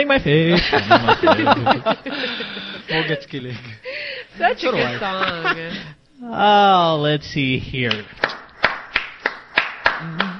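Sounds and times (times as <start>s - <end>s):
speech: 0.0s - 8.4s
laughter: 0.5s - 6.0s
hand claps: 7.8s - 10.3s.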